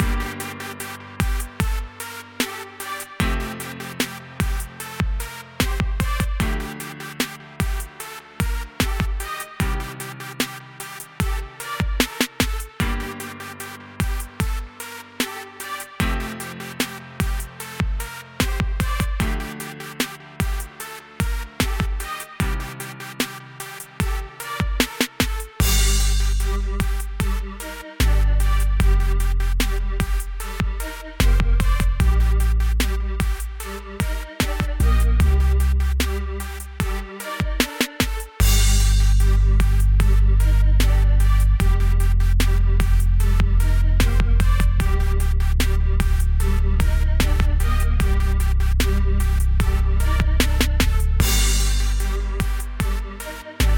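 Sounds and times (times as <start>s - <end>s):
trap beat with strings: 0.0s - 53.7s.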